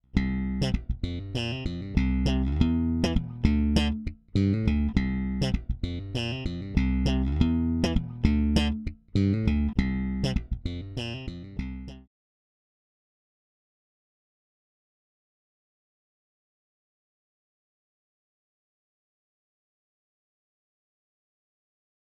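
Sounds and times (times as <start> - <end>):
bass: 0.0 - 12.1.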